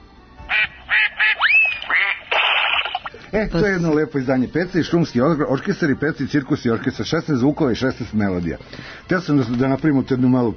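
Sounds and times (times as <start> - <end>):
duck quacking: 0.5 - 3.1
sliding whistle-like tone: 1.4 - 1.9
speech: 3.3 - 10.5.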